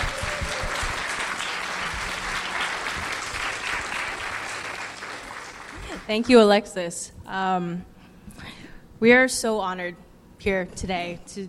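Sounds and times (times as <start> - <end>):
crowd applause: 0.0 - 6.2
speech: 6.1 - 7.9, 9.0 - 11.4.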